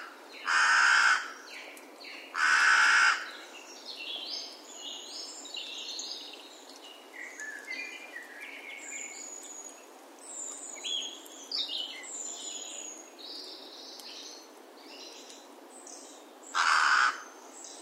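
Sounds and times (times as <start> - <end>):
carrion crow cawing coarsely: 0.5 - 1.3, 2.4 - 3.3, 16.6 - 17.3.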